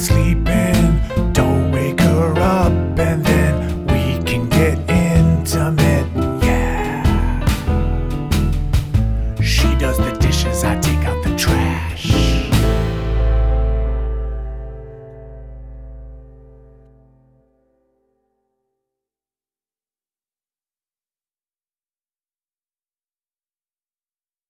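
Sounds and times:
blues music: 0.0s - 17.5s.

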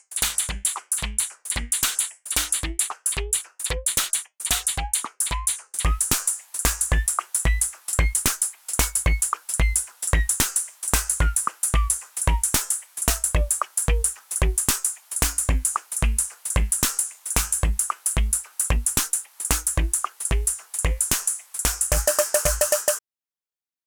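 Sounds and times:
groove music: 0.0s - 23.0s.

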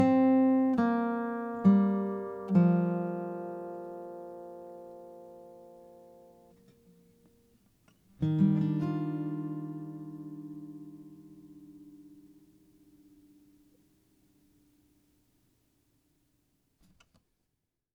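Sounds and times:
guitar playing: 0.0s - 7.1s, 8.2s - 13.5s.

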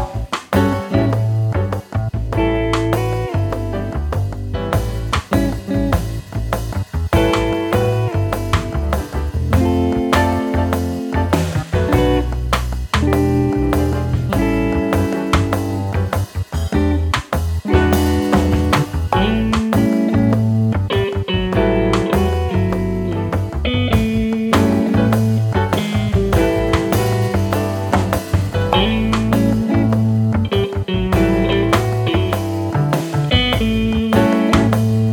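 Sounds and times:
jazz blues music in A: 0.0s - 35.1s.

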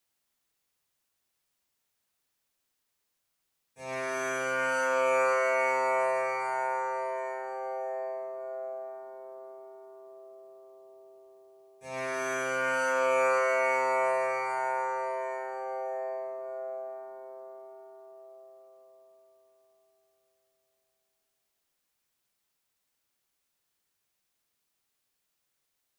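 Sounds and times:
tanpura drone: 3.8s - 19.7s.

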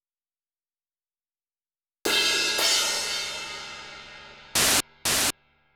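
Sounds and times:
cymbals: 2.1s - 5.4s.

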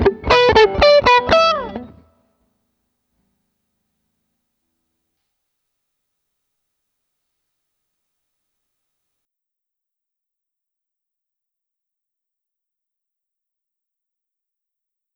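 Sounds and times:
lead guitar: 0.0s - 2.1s.

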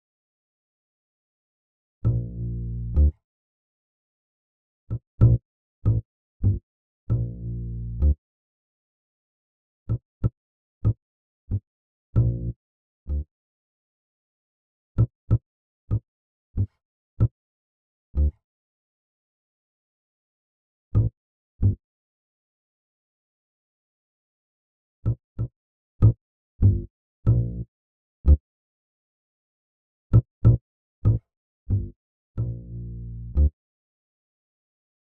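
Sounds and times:
bass: 2.0s - 3.2s, 4.9s - 8.2s, 9.9s - 13.3s, 15.0s - 17.3s, 18.1s - 18.4s, 20.9s - 21.8s, 25.0s - 28.4s, 30.1s - 33.6s.

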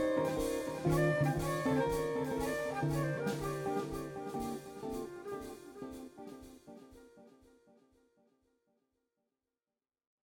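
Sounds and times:
jazzy music at 120 bpm: 0.0s - 7.2s.

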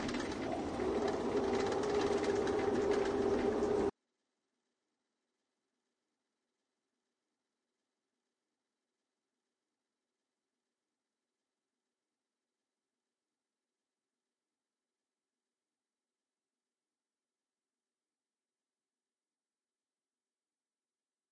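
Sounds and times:
soundscape: 0.2s - 3.9s.

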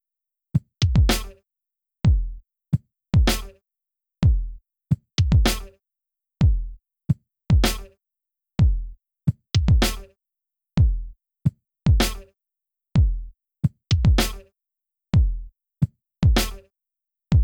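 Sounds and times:
drums: 0.6s - 1.4s, 2.1s - 2.4s, 3.2s - 3.6s, 4.2s - 5.8s, 6.4s - 6.8s, 7.5s - 7.9s, 8.6s - 10.1s, 10.8s - 11.1s, 11.9s - 12.3s, 13.0s - 14.5s, 15.2s - 16.6s.

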